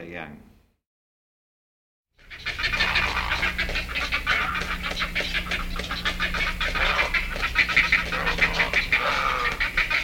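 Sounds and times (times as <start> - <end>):
black-headed heron harsh nasal calls: 2.2 - 10.0.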